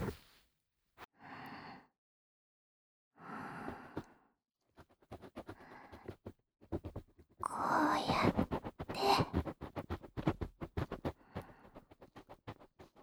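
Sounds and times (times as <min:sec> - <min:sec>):
right ear cleaning with a bonten ear pick: 0:07.4 - 0:11.1.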